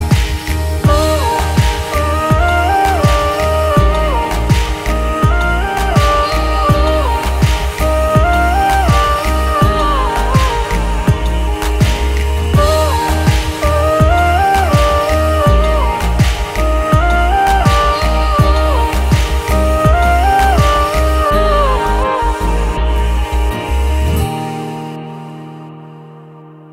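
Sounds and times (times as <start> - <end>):
instrumental music: 0.0 - 26.7.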